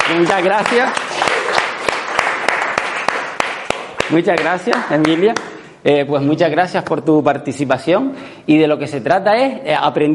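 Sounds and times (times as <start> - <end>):
audience applauding for a participant after a demonstration: 0.0 - 5.5
speech: 0.1 - 1.4, 4.1 - 10.1.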